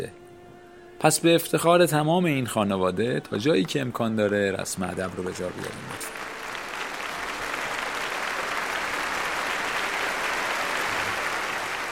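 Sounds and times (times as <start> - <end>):
speech: 0.0 - 0.2, 1.0 - 6.3
audience applause in a hall: 4.6 - 11.8.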